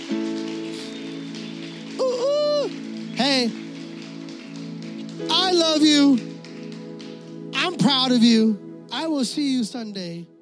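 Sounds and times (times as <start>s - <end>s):
crowd clapping: 0.0s - 8.4s
sliding voice or cheer: 2.0s - 3.6s
speech: 3.4s - 3.6s, 5.8s - 6.3s, 7.9s - 10.3s.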